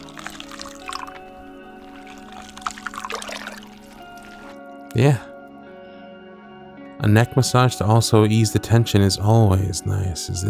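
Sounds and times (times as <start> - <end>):
water rinsing hair during a haircut: 0.0 - 4.8
speech: 4.9 - 5.3, 7.1 - 10.4.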